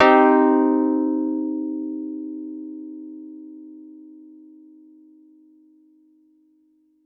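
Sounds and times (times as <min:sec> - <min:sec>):
Wurlitzer piano in minor key played hard: 0:00.0 - 0:03.4.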